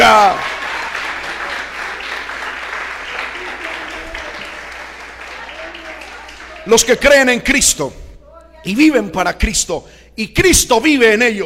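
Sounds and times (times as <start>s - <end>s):
audience applauding: 0.0s - 7.4s
speech: 6.6s - 8.0s, 8.6s - 11.4s.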